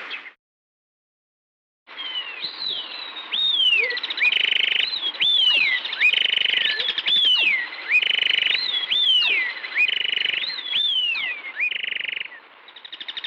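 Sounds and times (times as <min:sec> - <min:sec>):
various many birds chirping: 0:01.9 - 0:13.2.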